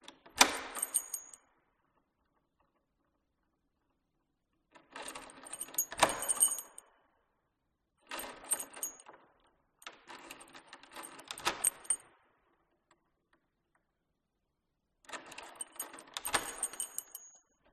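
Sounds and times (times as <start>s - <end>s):
reverberating old wooden door lock in an abandoned mansion hallway: 0.4s - 1.4s, 4.9s - 6.8s, 8.1s - 9.0s, 10.2s - 12.0s, 15.1s - 17.3s.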